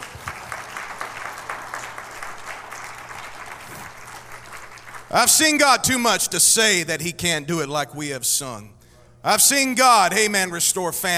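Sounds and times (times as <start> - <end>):
audience clapping hands: 0.0 - 6.3
speech: 5.1 - 11.1.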